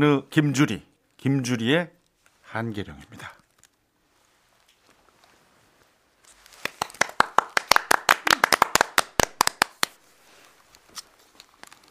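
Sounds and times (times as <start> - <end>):
speech: 0.0 - 3.4
hand clapping during music: 6.6 - 10.0.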